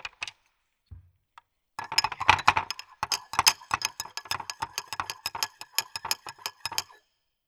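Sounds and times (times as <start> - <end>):
children's tableware set being played with: 1.8 - 7.0.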